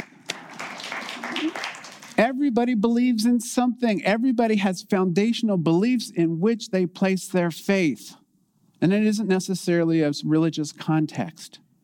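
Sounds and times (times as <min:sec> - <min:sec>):
round of applause: 0:00.0 - 0:02.2
speech: 0:01.4 - 0:08.2, 0:08.8 - 0:11.6.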